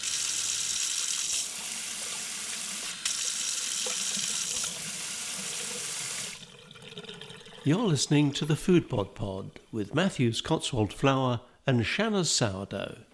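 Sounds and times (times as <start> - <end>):
hands washed under a running kitchen tap: 0.0 - 7.6
speech: 7.6 - 13.1.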